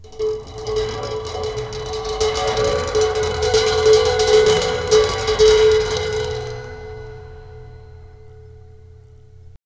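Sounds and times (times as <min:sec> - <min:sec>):
cymbal: 0:00.0 - 0:09.5.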